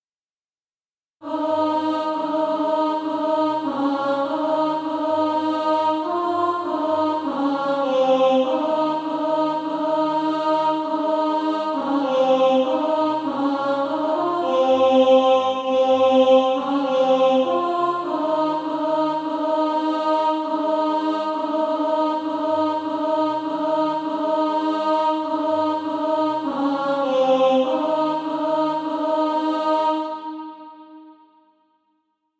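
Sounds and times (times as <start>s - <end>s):
alto voice singing practice music: 1.2s - 31.2s.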